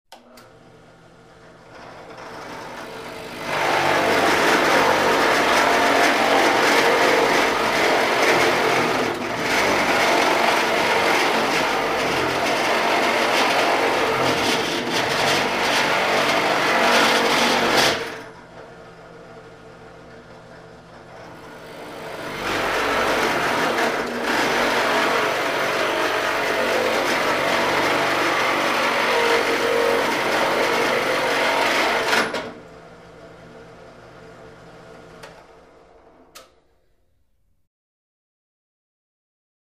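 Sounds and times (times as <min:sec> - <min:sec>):
broken drill press: 0:01.4 - 0:32.7.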